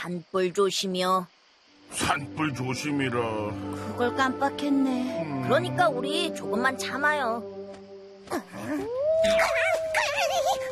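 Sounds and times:
speech: 0.0 - 7.6, 8.3 - 10.7
wolf howling: 8.6 - 10.7.

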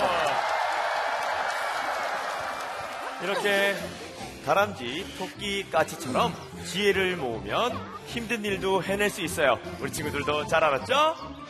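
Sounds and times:
audience applause: 0.0 - 3.9
laughter: 2.0 - 6.3
speech: 3.2 - 11.4.

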